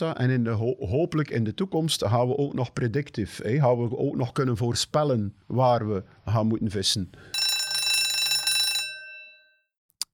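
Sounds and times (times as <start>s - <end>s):
speech: 0.0s - 7.4s
bell ringing: 7.4s - 9.5s.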